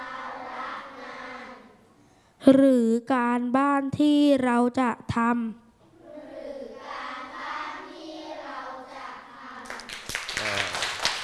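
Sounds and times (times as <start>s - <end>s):
speech: 2.4s - 5.6s
students clapping hands: 9.6s - 11.2s.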